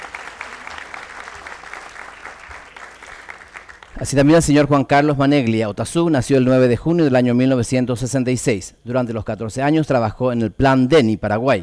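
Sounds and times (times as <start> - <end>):
audience applause: 0.0 - 4.3
speech: 4.0 - 11.6.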